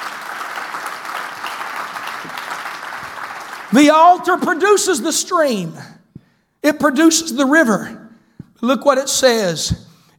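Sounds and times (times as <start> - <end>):
audience clapping hands: 0.0 - 4.6
speech: 3.7 - 6.0, 6.6 - 8.0, 8.6 - 9.9.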